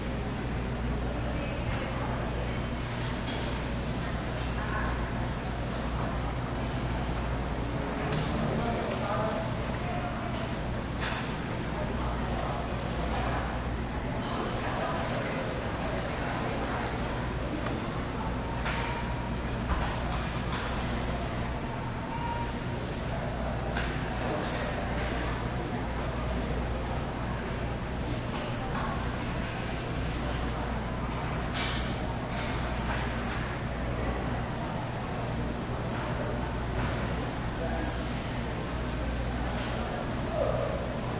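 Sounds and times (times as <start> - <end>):
food court ambience: 0.0 - 41.1.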